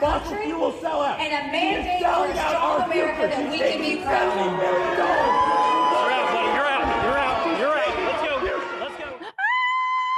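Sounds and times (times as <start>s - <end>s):
speech: 0.0s - 5.4s
rally crowd screaming and cheering: 4.2s - 10.1s.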